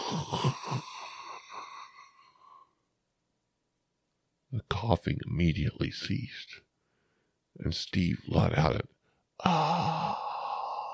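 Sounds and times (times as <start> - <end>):
long wheezing inhale of cigarette drag: 0.0 - 2.8, 9.4 - 10.9
speech: 4.8 - 6.6, 7.6 - 9.9.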